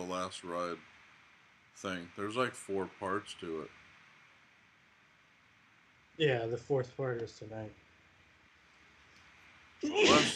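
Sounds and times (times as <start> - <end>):
speech: 0.1 - 1.0, 1.8 - 3.8, 6.2 - 7.8, 9.8 - 10.3
person sneezing: 9.8 - 10.3.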